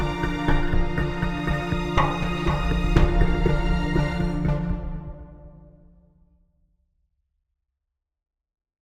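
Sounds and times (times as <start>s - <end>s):
cinematic music sample: 0.0s - 6.1s.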